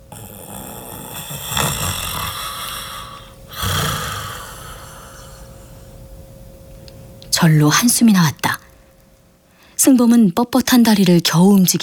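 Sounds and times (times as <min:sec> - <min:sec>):
old man snoring: 0:00.0 - 0:05.9
quiet breathing: 0:00.0 - 0:07.2, 0:08.6 - 0:09.9
steady hiss: 0:00.0 - 0:11.8
speech: 0:07.4 - 0:08.5, 0:09.9 - 0:11.8.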